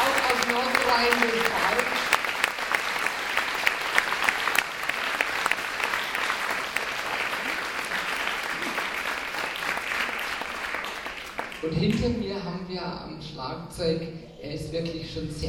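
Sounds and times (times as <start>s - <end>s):
large audience applause: 0.0s - 11.7s
speech: 1.0s - 1.6s, 11.7s - 15.4s.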